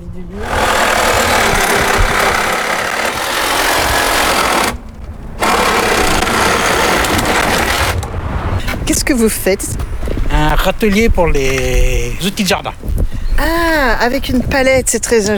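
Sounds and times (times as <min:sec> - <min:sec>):
speech: 0:00.2 - 0:00.6, 0:08.9 - 0:15.3
cordless screwdriver: 0:00.4 - 0:08.0
saw cutting: 0:00.4 - 0:08.2.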